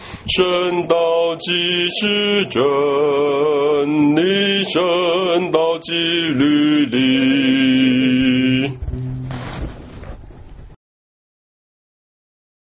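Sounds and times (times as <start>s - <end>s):
hymn: 0.0s - 9.1s.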